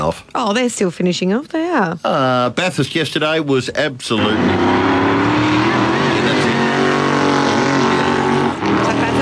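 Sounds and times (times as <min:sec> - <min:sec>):
speech: 0:00.0 - 0:04.9
race car engines roaring around the Bathurst motor race circuit: 0:04.2 - 0:09.2.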